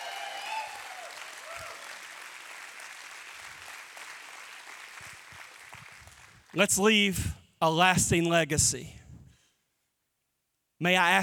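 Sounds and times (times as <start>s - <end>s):
faint cheers: 0.0s - 2.0s
audience applauding: 0.0s - 6.6s
speech: 6.6s - 9.0s, 10.8s - 11.2s.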